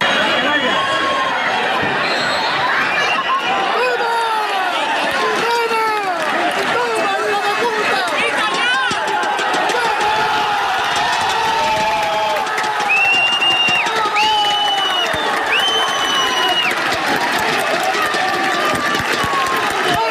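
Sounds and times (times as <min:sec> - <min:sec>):
football stadium crowd cheering at final whistle: 0:00.0 - 0:20.0.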